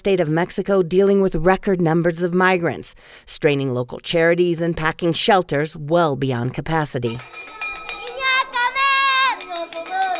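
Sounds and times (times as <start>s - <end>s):
speech: 0.0s - 7.8s
dinner bell clanging: 7.1s - 10.1s
children calling out: 7.2s - 10.1s.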